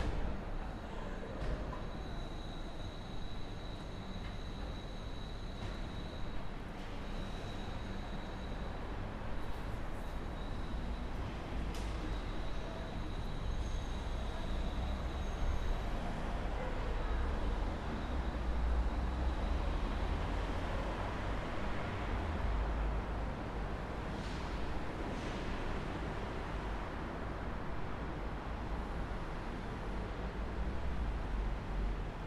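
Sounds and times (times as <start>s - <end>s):
parking garage ambience at night: 0.0s - 32.2s.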